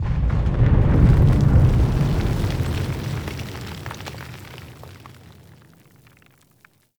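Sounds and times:
battle ambient tunnel rumble: 0.0s - 4.4s.

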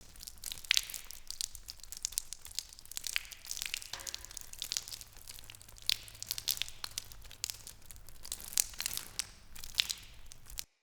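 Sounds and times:
water dripping in a cave: 0.0s - 10.8s.

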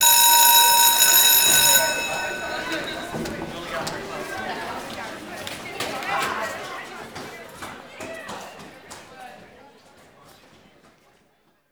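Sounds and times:
destroyed classroom bell ringing: 0.0s - 4.8s.

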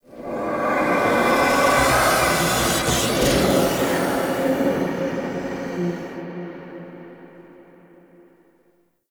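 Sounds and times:
whispers: 0.1s - 7.6s.

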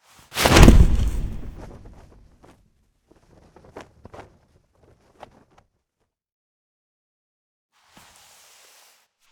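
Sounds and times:
foley sounds: 0.4s - 2.2s.

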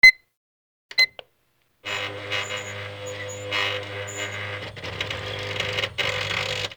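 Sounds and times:
office fax machine: 1.8s - 6.7s.

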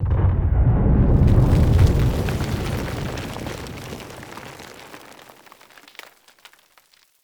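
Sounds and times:
battle ambient tunnel rumble: 0.0s - 4.3s.

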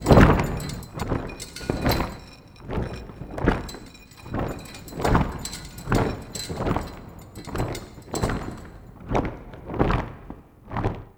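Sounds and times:
prop flag flapping: 0.0s - 8.9s.

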